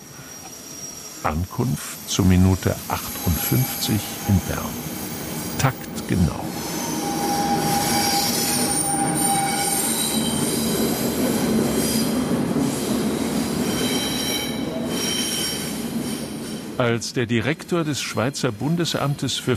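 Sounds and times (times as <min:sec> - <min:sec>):
train rumbling on rails: 0:00.0 - 0:19.5
train wheel squeal: 0:00.2 - 0:01.4, 0:03.0 - 0:05.2, 0:06.5 - 0:16.6
speech: 0:01.2 - 0:04.9, 0:05.6 - 0:06.7, 0:16.8 - 0:19.5.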